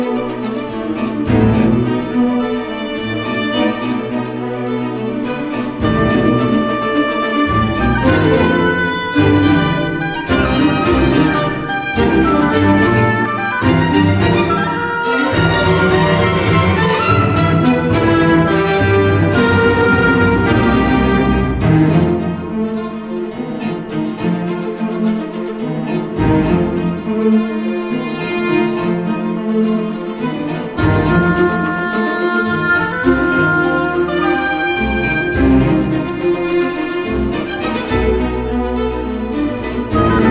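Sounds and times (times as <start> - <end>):
harpsichord: 0.0 - 40.3
string ensemble: 0.0 - 40.3
oboe: 5.2 - 22.6, 30.2 - 38.7, 39.3 - 40.3.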